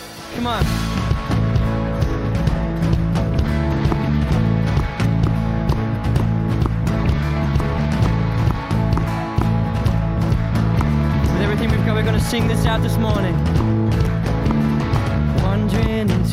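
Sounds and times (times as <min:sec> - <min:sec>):
speech: 0:00.3 - 0:00.9, 0:12.3 - 0:13.6
audience clapping along to song: 0:01.2 - 0:16.2.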